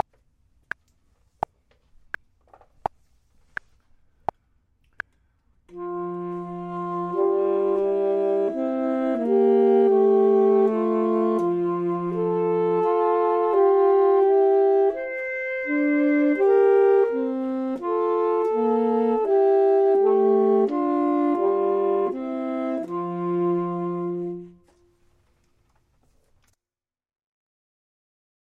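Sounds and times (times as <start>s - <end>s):
saxophone: 5.7s - 25.0s
clarinet: 5.7s - 25.2s.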